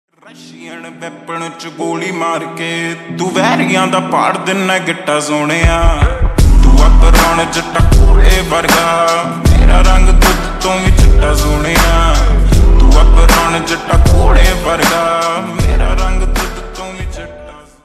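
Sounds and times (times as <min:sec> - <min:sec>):
slowed ringtone with reverb: 0:00.3 - 0:17.7.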